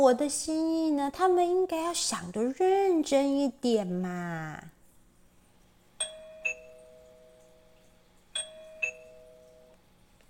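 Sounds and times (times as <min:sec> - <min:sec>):
speech: 0:00.0 - 0:04.7
doorbell ringing: 0:06.0 - 0:09.9.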